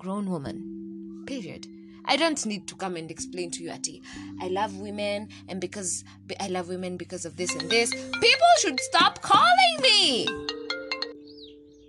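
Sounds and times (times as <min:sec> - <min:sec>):
speech: 0:00.0 - 0:10.5
phone ringing with incoming call: 0:07.5 - 0:11.6.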